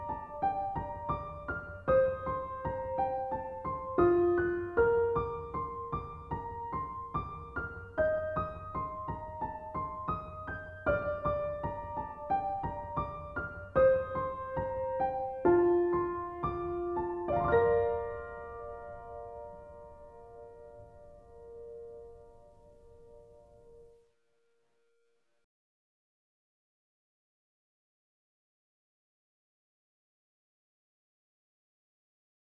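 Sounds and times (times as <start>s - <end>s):
piano: 0.0s - 24.1s.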